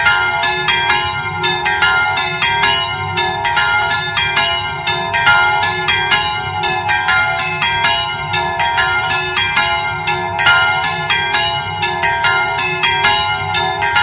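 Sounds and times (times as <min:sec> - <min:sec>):
bells in Piani di Sotto di Chiusaforte: 0:00.0 - 0:14.0.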